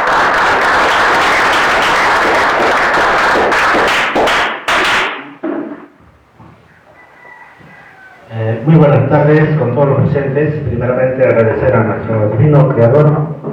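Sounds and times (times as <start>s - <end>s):
audience applause: 0.0s - 4.4s
speech: 8.7s - 13.2s.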